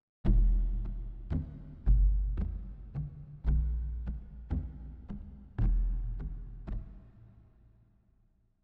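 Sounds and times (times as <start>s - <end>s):
tribal drums: 0.3s - 7.0s.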